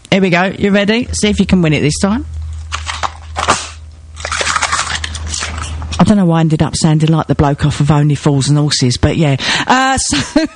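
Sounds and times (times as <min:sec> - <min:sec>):
speech: 0:00.1 - 0:02.8, 0:06.1 - 0:10.5
Christmas cracker being pulled and snapping: 0:02.3 - 0:06.0.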